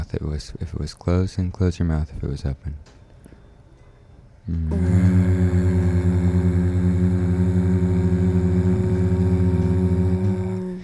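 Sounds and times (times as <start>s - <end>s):
speech: 0.1s - 3.0s, 4.5s - 6.2s
person humming while breathing out: 4.5s - 10.8s.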